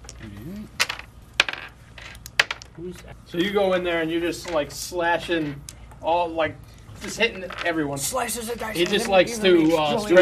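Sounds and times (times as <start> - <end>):
low voice murmur: 0.2 - 0.8
dice rolling on table: 0.8 - 2.8, 7.0 - 7.8
speech: 2.8 - 10.1.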